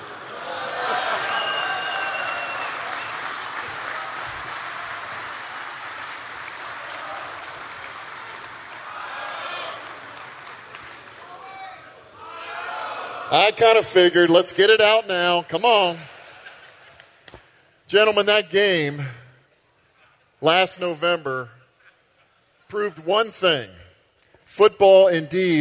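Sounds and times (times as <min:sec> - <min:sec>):
audience applause greeting the chairman of a Catholic men's conference: 0:00.0 - 0:11.7
speech: 0:13.3 - 0:16.1, 0:17.9 - 0:19.2, 0:20.4 - 0:21.6, 0:22.7 - 0:23.8, 0:24.5 - 0:25.5.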